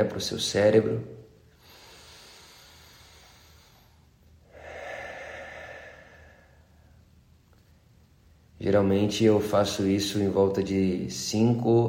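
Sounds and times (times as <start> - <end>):
speech: 0.0 - 1.2, 8.6 - 11.8
deep breathing during a breathing exercise: 1.5 - 7.8.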